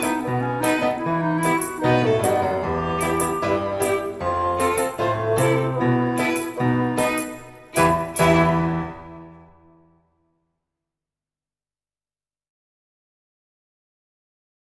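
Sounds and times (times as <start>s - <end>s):
karaoke polka played on flute: 0.0s - 9.4s.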